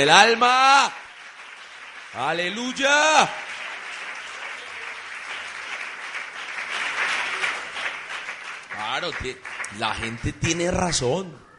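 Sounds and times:
speech: 0.0s - 1.1s, 2.1s - 3.5s, 8.8s - 11.4s
audience applause: 0.0s - 11.2s.

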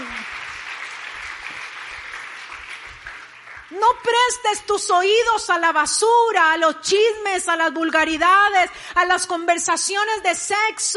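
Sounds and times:
audience applause: 0.0s - 3.8s
speech: 3.7s - 10.9s.

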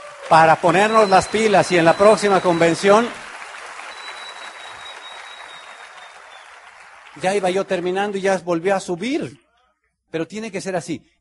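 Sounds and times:
audience applause: 0.0s - 8.3s
speech: 0.3s - 3.2s, 7.2s - 9.4s, 10.1s - 11.1s.

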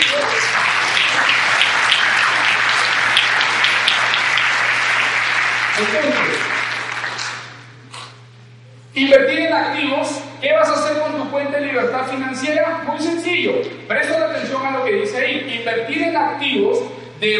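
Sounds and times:
audience applause: 0.0s - 7.7s
speech: 9.0s - 17.3s.

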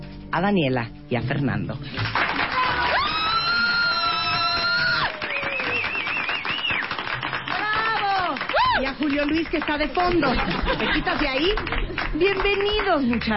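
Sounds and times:
speech: 0.3s - 2.2s, 8.8s - 13.3s
audience applause: 2.0s - 13.3s
laughter: 10.0s - 11.7s.

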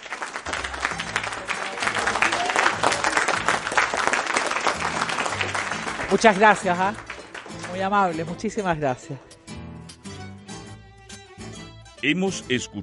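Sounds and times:
students applauding: 0.0s - 8.8s
speech: 6.1s - 7.1s, 7.8s - 9.3s, 12.0s - 12.8s.

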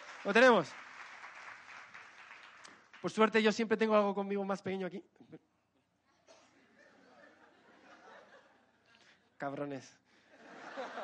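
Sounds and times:
audience applause: 0.0s - 3.2s
speech: 0.2s - 0.8s, 3.0s - 5.5s, 9.4s - 10.0s
laughter: 6.6s - 8.9s, 10.3s - 11.0s.

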